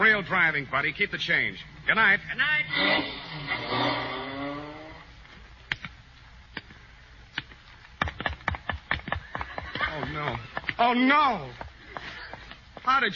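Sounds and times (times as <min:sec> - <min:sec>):
speech: 0:00.0 - 0:04.0, 0:10.8 - 0:11.7, 0:12.8 - 0:13.1
taxi cab engine revving as it drives away: 0:02.6 - 0:05.1
sharp clicks and taps: 0:05.7 - 0:09.5.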